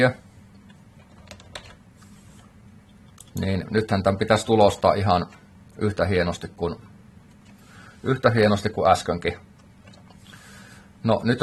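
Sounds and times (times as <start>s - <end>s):
speech: 0.0s - 0.2s, 3.4s - 6.9s, 8.0s - 9.5s, 11.0s - 11.4s
low steady hum: 0.0s - 11.4s
light keystrokes on a computer keyboard: 1.0s - 1.8s.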